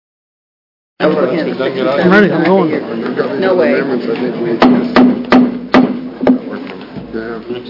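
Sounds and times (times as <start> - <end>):
speech: 1.0 - 5.5, 7.1 - 7.6
wooden gavel struck to open a meeting: 4.6 - 7.1.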